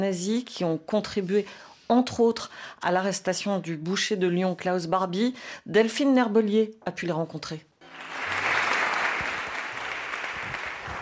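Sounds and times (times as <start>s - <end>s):
speech: 0.0s - 7.7s
sizable crowd applauding at an exhibition opening: 7.8s - 10.9s.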